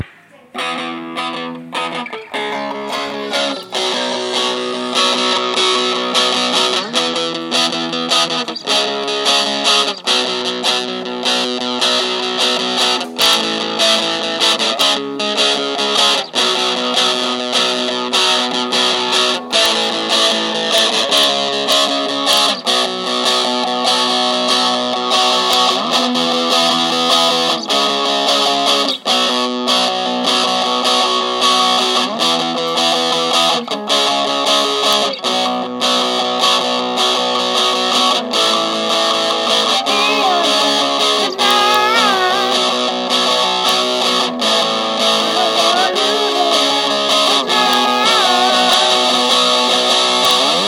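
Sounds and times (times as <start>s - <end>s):
Dano guitar: 0.0s - 50.6s.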